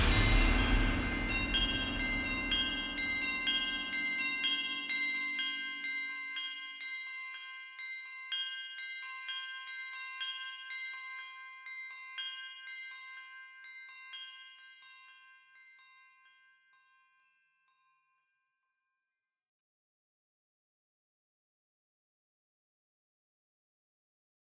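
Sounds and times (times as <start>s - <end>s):
drums: 0.0s - 5.4s
bells: 0.0s - 18.6s.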